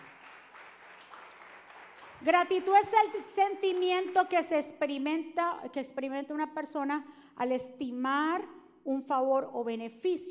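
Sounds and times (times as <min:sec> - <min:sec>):
audience applause: 0:00.0 - 0:02.4
speech: 0:02.2 - 0:10.2.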